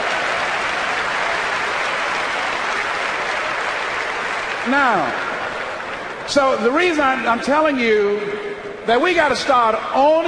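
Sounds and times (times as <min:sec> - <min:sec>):
audience applause: 0:00.0 - 0:06.6
speech: 0:04.7 - 0:05.3, 0:06.3 - 0:10.2.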